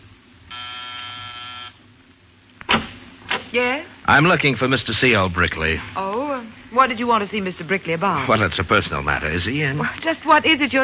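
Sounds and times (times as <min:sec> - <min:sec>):
door buzzer being pressed: 0:00.5 - 0:01.8
speech: 0:03.5 - 0:10.8.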